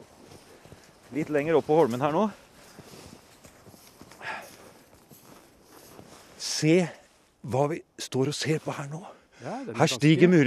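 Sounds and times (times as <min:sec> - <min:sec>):
footsteps in knee-deep snow on an islet in Lake Mjøsa: 0:00.0 - 0:07.5
speech: 0:01.1 - 0:02.4, 0:06.6 - 0:10.4.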